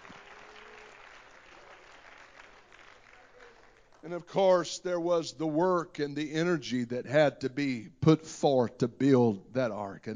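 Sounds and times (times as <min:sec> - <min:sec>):
audience clapping hands: 0:00.0 - 0:04.6
speech: 0:04.0 - 0:10.1.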